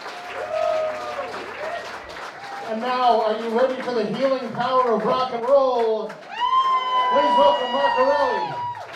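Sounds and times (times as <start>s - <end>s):
audience applause: 0.0s - 8.9s
speech: 2.7s - 6.2s, 7.1s - 8.6s.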